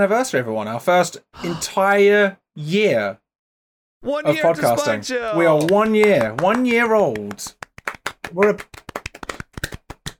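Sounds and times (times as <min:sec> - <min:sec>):
speech: 0:00.0 - 0:03.2, 0:04.0 - 0:07.6, 0:08.3 - 0:08.8
hand clapping: 0:04.8 - 0:10.1.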